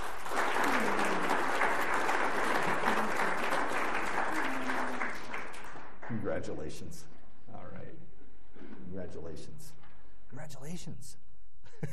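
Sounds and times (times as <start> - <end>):
audience applauding: 0.0 - 6.3
speech: 6.4 - 7.2, 9.1 - 11.2.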